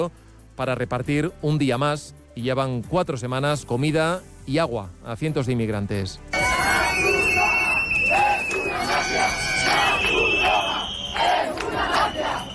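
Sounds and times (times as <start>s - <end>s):
speech: 0.0s - 7.1s
protesters shouting: 6.4s - 12.5s.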